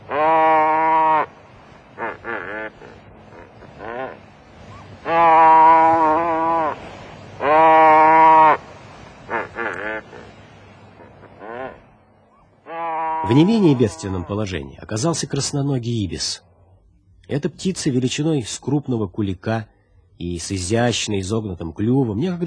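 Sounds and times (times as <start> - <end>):
short-tailed albatross call: 0.0 - 1.4, 2.0 - 6.8, 7.4 - 8.6, 9.3 - 10.4, 11.0 - 14.5
speech: 13.3 - 16.5, 17.3 - 22.4.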